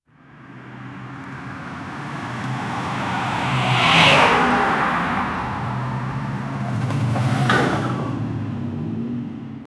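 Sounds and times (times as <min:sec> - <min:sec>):
two cars crashing: 0:01.7 - 0:08.6.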